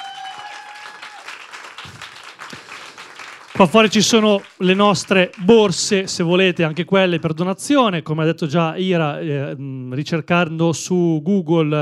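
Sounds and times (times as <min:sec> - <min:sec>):
audience applause: 0:00.0 - 0:07.2
speech: 0:03.6 - 0:11.8.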